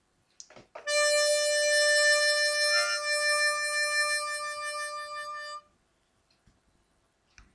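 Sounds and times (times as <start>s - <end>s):
vibrato tone: 0.9s - 5.7s.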